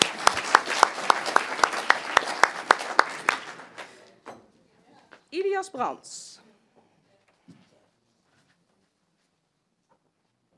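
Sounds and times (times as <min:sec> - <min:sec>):
steady rhythmic applause of sharp evenly spaced claps: 0:00.0 - 0:04.0
speech: 0:05.6 - 0:06.3.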